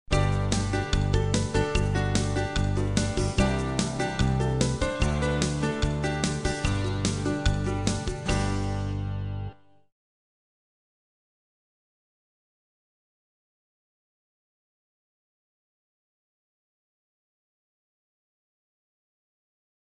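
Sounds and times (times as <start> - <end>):
background music: 0.1 - 9.8.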